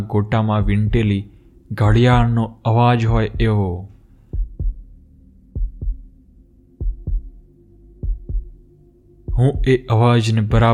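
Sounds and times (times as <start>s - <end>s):
speech: 0.0s - 3.9s, 9.4s - 10.7s
faint hum: 0.0s - 10.7s
heartbeat sound effect: 0.6s - 1.2s, 1.9s - 2.4s, 3.1s - 3.6s, 4.3s - 9.9s, 10.5s - 10.7s.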